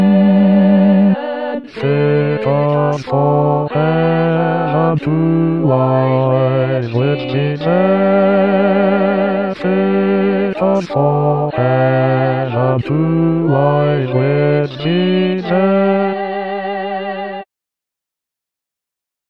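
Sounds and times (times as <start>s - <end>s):
bass playing a carol: 0.0s - 17.4s.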